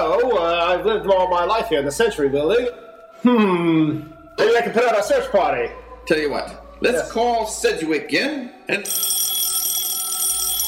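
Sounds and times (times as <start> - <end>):
speech: 0.8 - 9.2
telephone ringing: 8.8 - 10.6.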